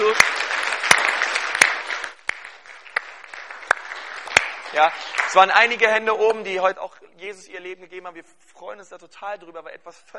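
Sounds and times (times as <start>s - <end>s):
audience applause: 0.0s - 5.6s
speech: 4.8s - 10.1s.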